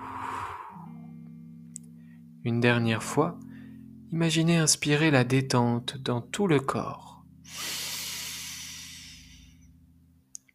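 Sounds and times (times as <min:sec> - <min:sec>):
slow exhale through pursed lips during a guided meditation: 0:00.0 - 0:01.0, 0:07.4 - 0:09.7
speech: 0:02.4 - 0:03.5, 0:04.1 - 0:07.8.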